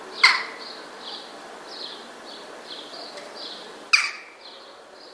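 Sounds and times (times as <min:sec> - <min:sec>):
western jackdaw calling: 0:00.2 - 0:00.8, 0:03.9 - 0:04.5.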